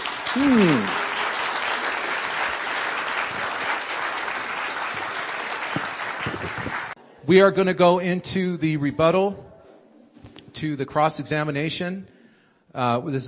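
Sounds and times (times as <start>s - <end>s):
audience applause: 0.0s - 7.0s
speech: 0.4s - 1.0s, 7.3s - 9.5s, 10.6s - 13.2s.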